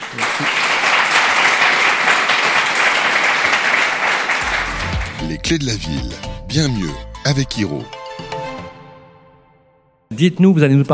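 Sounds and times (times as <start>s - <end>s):
audience applause: 0.0s - 5.5s
speech: 5.4s - 8.0s, 10.1s - 10.9s.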